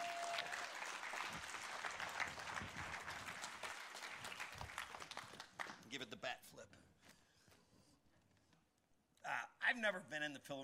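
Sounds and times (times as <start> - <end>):
audience applause: 0.0 - 5.8
speech: 5.9 - 6.5, 9.3 - 10.6.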